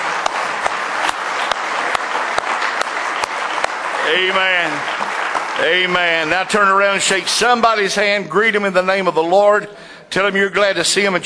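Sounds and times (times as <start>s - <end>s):
church audience clapping hands: 0.0s - 8.0s
speech: 4.1s - 5.0s, 5.6s - 11.2s.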